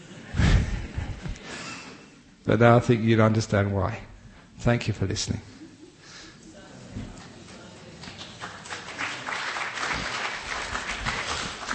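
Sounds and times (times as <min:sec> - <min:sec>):
speech: 0:02.4 - 0:05.6
audience clapping after a talk: 0:07.2 - 0:11.7.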